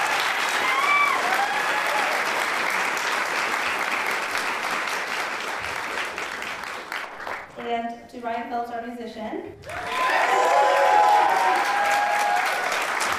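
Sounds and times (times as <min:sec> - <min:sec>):
faint whistles and cheers: 0:00.0 - 0:02.2, 0:09.7 - 0:12.9
audience applause: 0:00.0 - 0:07.6, 0:09.6 - 0:13.1
speech: 0:07.7 - 0:10.0.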